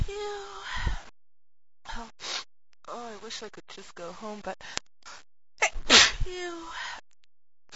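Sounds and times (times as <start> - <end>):
speech: 0.1 - 0.6, 3.3 - 4.9, 6.3 - 6.9
person sneezing: 5.6 - 6.3.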